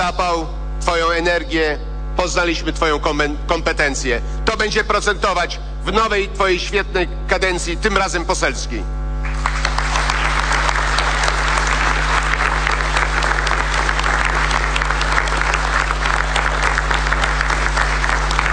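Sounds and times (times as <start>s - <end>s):
speech: 0.0s - 9.0s
crowd applause: 9.2s - 18.5s.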